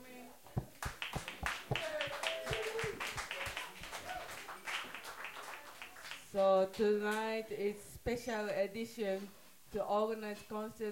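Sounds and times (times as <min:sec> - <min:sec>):
audience applause: 0:00.8 - 0:06.3
whistles and cheering voices: 0:01.8 - 0:04.6
speech: 0:06.4 - 0:10.9.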